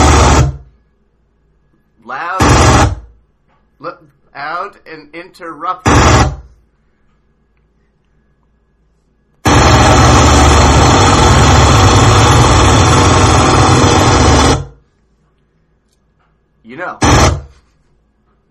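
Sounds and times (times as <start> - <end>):
jackhammer running outside: 0.0 - 0.7, 2.4 - 3.1, 5.9 - 6.5, 9.4 - 14.8, 17.0 - 17.6
speech: 3.8 - 6.4.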